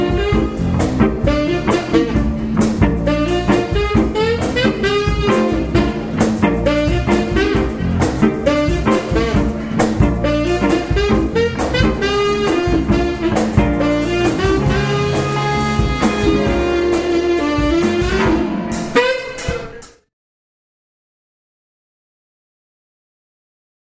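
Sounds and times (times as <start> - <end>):
jazz and blues band playing: 0.0 - 20.0.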